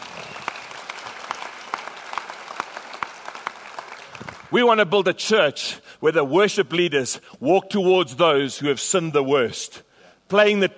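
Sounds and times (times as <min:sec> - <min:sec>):
audience applauding: 0:00.0 - 0:04.5
speech: 0:04.5 - 0:10.7.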